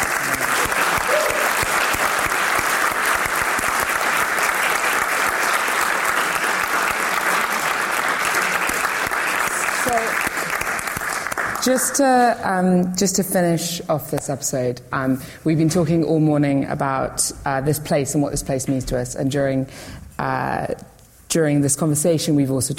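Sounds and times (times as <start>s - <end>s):
audience applause: 0.0s - 11.7s
faint voices and whoops: 0.6s - 1.7s
speech: 11.6s - 22.7s.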